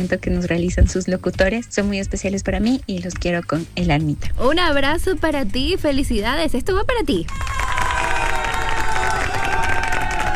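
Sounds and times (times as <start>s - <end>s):
speech: 0.0s - 7.7s
crowd applause: 7.3s - 10.3s.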